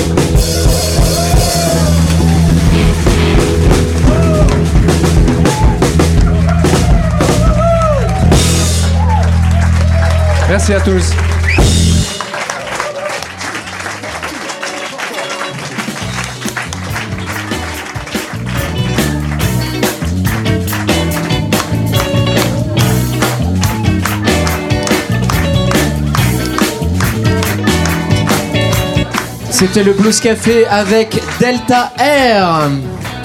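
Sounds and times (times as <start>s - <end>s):
audience applause: 0.2s - 33.2s
speech: 10.6s - 11.4s, 29.6s - 33.0s.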